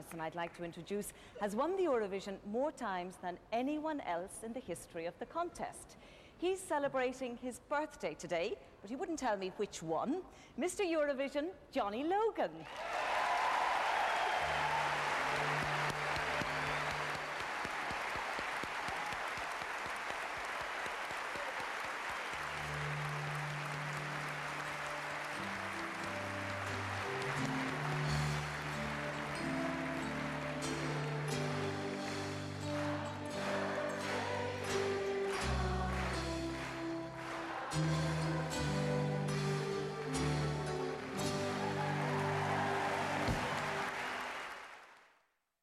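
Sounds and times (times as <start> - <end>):
speech: 0.0 - 13.1
audience applause: 12.6 - 45.2
audience singing a birthday song: 30.4 - 39.4.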